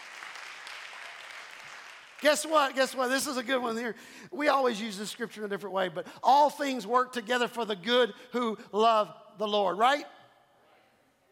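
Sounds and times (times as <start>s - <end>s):
audience hand clapping: 0.0s - 3.0s
speech: 2.2s - 10.2s.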